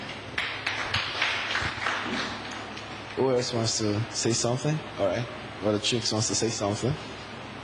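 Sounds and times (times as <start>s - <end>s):
round of applause: 0.0s - 2.9s
speech: 3.2s - 7.2s.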